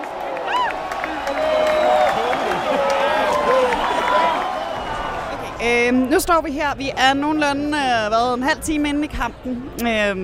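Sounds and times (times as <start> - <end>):
stadium crowd cheering: 0.0 - 6.0
speech: 5.6 - 10.2.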